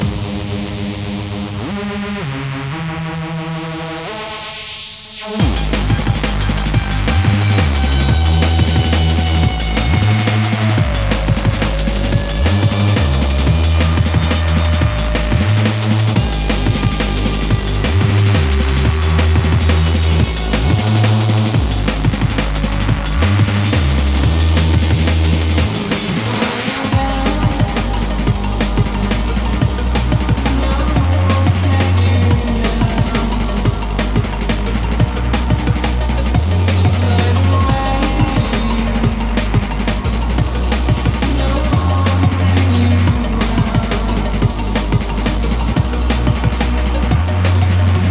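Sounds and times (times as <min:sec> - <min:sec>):
music: 0:00.0 - 0:48.0.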